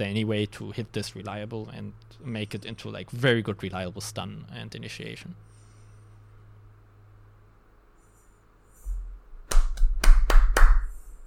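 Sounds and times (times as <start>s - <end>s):
speech: 0.0s - 5.5s
sharp hand claps: 9.4s - 11.0s.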